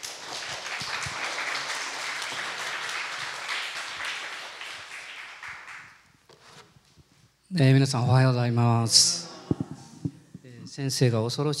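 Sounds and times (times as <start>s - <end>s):
audience applause: 0.0s - 6.0s
speech: 7.5s - 9.2s, 10.8s - 11.5s.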